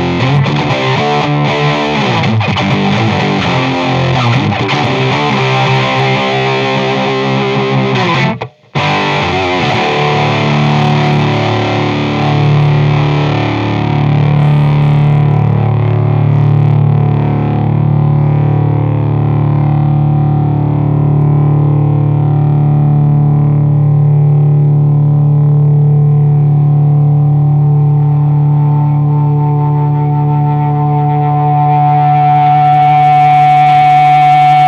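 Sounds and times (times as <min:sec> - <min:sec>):
high gain guitar amp: 0:00.0 - 0:34.6.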